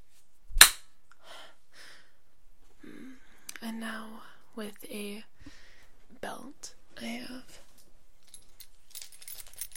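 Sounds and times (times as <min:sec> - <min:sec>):
hand slapping skin: 0:00.6 - 0:00.9
speech: 0:03.8 - 0:05.6, 0:06.2 - 0:07.6.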